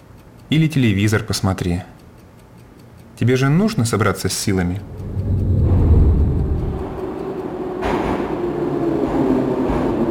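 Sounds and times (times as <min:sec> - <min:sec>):
speech: 0:00.5 - 0:02.0, 0:03.2 - 0:05.0
metro train running with steady low rumble and rattling wheel noise: 0:04.8 - 0:10.0.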